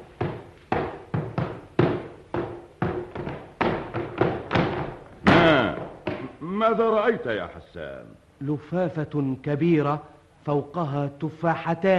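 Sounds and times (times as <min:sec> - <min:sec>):
hollow thuds and knocks of a wooden chest being opened: 0:00.0 - 0:06.4
speech: 0:06.6 - 0:11.9.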